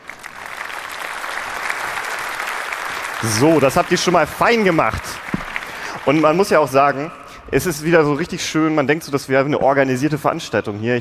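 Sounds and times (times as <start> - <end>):
audience applause: 0.0 - 7.1
speech: 3.2 - 5.2, 6.0 - 10.9.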